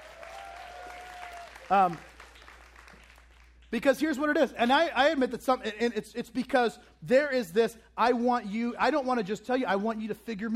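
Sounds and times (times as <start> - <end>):
audience of women clapping: 0.0 - 3.7
speech: 1.7 - 2.1, 3.7 - 10.5.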